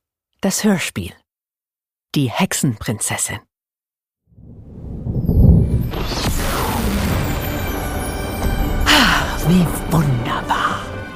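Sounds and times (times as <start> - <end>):
speech: 0.4 - 1.2, 2.1 - 3.5, 9.5 - 10.6
thunderstorm with thunder: 4.4 - 9.4.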